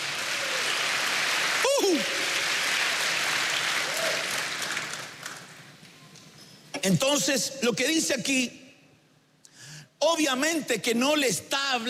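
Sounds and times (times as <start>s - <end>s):
audience applause: 0.0s - 5.6s
speech: 6.8s - 8.6s, 10.0s - 11.8s.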